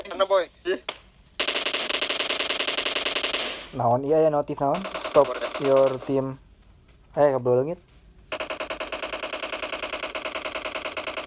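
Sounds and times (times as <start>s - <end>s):
speech: 0.2s - 1.0s, 3.8s - 6.4s, 7.2s - 7.9s
distant gunfire in a video game: 1.4s - 3.8s, 4.8s - 6.2s, 8.3s - 11.2s.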